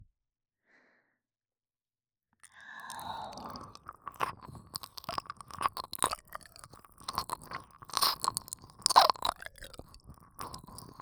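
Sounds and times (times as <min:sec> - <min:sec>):
ASMR ear licking sounds: 0:02.4 - 0:11.0.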